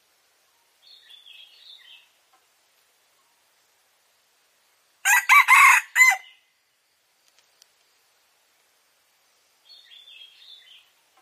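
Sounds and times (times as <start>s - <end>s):
red junglefowl crowing: 5.0s - 6.4s.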